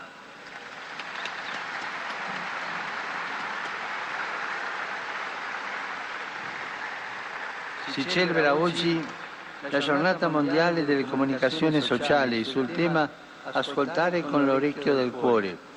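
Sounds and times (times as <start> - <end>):
crowd applause greeting a newly beatified priest at a religious ceremony: 0.0 - 11.5
speech: 7.9 - 15.7.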